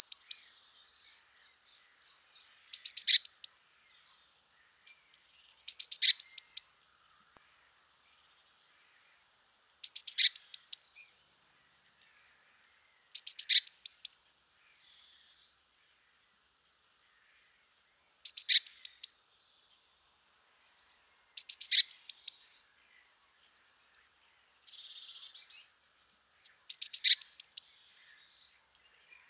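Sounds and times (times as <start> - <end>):
Eurasian blue tit calls: 0.0 - 0.4, 2.7 - 6.7, 9.8 - 10.8, 13.2 - 14.2, 18.3 - 19.2, 21.4 - 22.4, 26.4 - 29.2.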